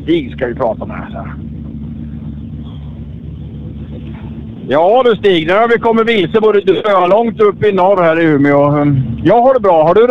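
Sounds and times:
speech: 0:00.0 - 0:01.6, 0:04.7 - 0:10.1
white rally car engine rumbling: 0:00.0 - 0:10.1.

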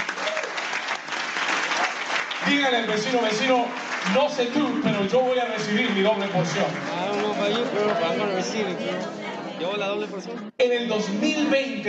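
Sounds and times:
audience applauding: 0:00.0 - 0:08.7
speech: 0:02.4 - 0:11.8.

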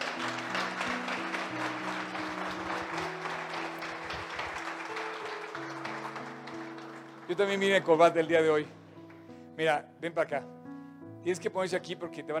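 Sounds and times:
audience applause: 0:00.0 - 0:07.9
speech: 0:07.3 - 0:08.8, 0:09.6 - 0:10.6, 0:11.2 - 0:12.3.

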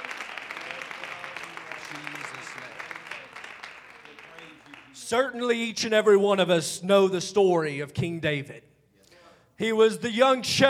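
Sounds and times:
audience hand clap of praise: 0:00.0 - 0:05.4
speech: 0:05.1 - 0:08.7, 0:09.6 - 0:10.6.

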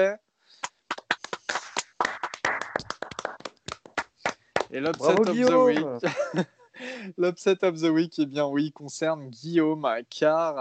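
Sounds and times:
speech: 0:00.0 - 0:00.2, 0:04.7 - 0:10.5
small group clapping: 0:00.6 - 0:06.0
laughter: 0:04.9 - 0:07.1.

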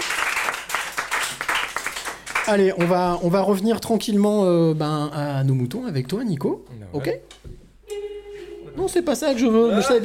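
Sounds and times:
crowd applause: 0:00.0 - 0:02.6
speech: 0:02.5 - 0:07.6, 0:08.8 - 0:10.0.

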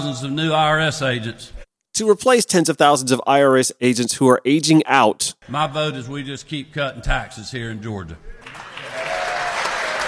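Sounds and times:
speech: 0:00.0 - 0:08.7
audience applause: 0:08.4 - 0:10.0.

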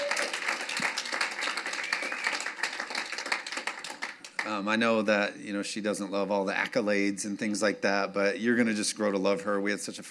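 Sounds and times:
audience applause welcoming a guest speaker: 0:00.0 - 0:04.6
speech: 0:04.5 - 0:10.0.

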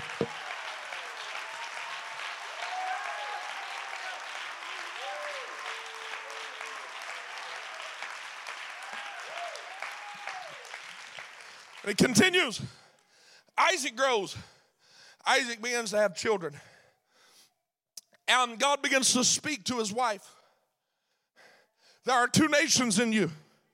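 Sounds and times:
audience clapping hands: 0:00.0 - 0:12.5
speech: 0:11.9 - 0:12.8, 0:13.7 - 0:14.5, 0:15.2 - 0:16.7, 0:18.3 - 0:20.4, 0:22.0 - 0:23.4.

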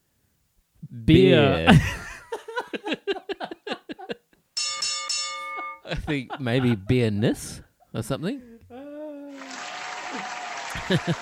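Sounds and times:
speech: 0:01.0 - 0:01.9, 0:06.1 - 0:08.5, 0:10.9 - 0:11.2
laughter: 0:01.4 - 0:04.3, 0:05.8 - 0:07.6, 0:08.8 - 0:11.2
applause sound effect: 0:09.3 - 0:11.2
crowd cheering sound effect: 0:09.3 - 0:11.2.

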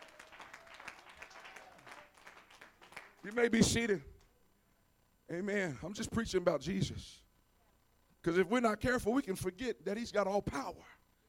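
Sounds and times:
audience clapping hands: 0:00.0 - 0:03.6
speech: 0:03.2 - 0:04.1, 0:05.3 - 0:07.2, 0:08.2 - 0:11.0.

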